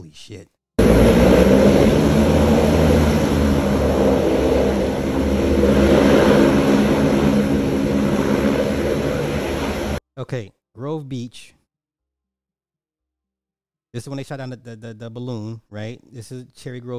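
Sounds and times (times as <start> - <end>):
speech: 0.1 - 2.2, 10.2 - 11.6, 14.0 - 16.9
big hovercraft engine and propellers: 0.8 - 10.0.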